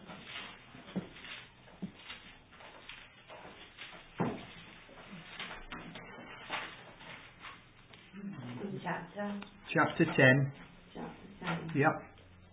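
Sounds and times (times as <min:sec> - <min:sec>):
Bible pages rustling: 0:00.1 - 0:08.1
speech: 0:08.9 - 0:10.7, 0:11.7 - 0:12.1.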